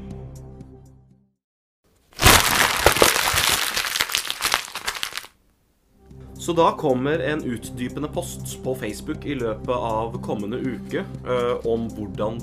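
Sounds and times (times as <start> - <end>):
exam papers being crumpled up: 2.2 - 5.3
speech: 6.4 - 12.4.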